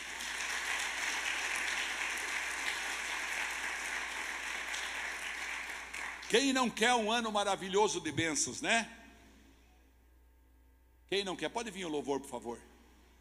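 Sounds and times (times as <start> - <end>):
audience applauding: 0.0 - 6.4
speech: 6.3 - 9.0, 11.1 - 12.7.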